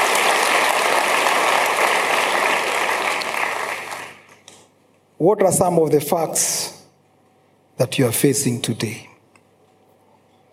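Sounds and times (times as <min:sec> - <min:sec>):
audience applause: 0:00.0 - 0:04.3
speech: 0:05.2 - 0:06.8, 0:07.8 - 0:09.1.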